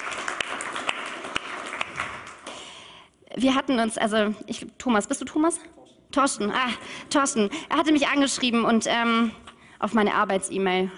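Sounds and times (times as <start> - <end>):
audience applause: 0.0 - 2.6
speech: 3.4 - 10.9.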